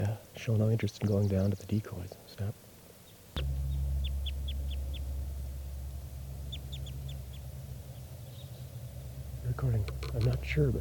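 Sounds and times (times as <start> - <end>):
speech: 0.1 - 2.7, 9.6 - 10.8
type 2 bird calls: 0.9 - 10.7.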